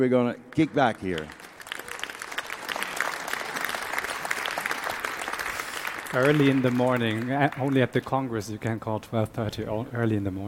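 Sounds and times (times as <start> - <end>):
speech: 0.0 - 1.4, 6.1 - 10.4
audience welcome applause: 0.5 - 8.3.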